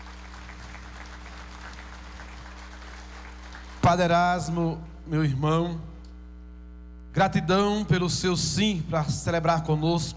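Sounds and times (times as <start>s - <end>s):
crowd applause: 0.0s - 3.9s
low constant hum: 0.0s - 10.1s
speech: 3.9s - 5.9s, 7.2s - 10.1s.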